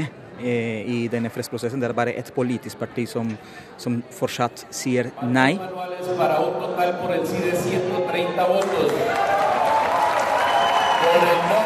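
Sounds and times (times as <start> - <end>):
speech: 0.0 - 9.6, 11.0 - 11.6
applause in national assembly: 8.4 - 11.6
cheering in national assembly: 8.6 - 11.6.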